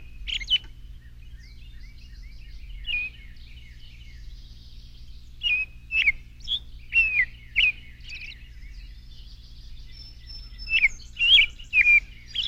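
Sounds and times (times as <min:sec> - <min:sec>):
low hum: 0:00.0 - 0:12.4
Baltimore oriole singing fluty whistles: 0:02.8 - 0:03.2, 0:05.4 - 0:08.5, 0:09.9 - 0:12.4.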